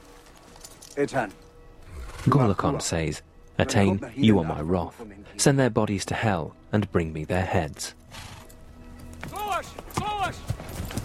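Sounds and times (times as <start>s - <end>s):
horses' hooves clopping as Pict warriors ride away on horseback: 0.0s - 2.3s, 8.0s - 11.0s
speech: 1.0s - 1.4s, 2.2s - 8.4s.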